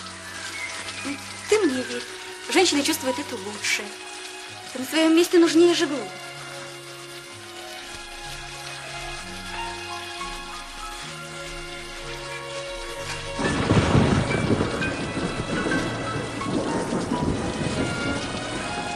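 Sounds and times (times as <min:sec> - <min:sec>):
rain: 0:00.0 - 0:18.9
speech: 0:01.8 - 0:06.3
thunder: 0:12.8 - 0:18.9.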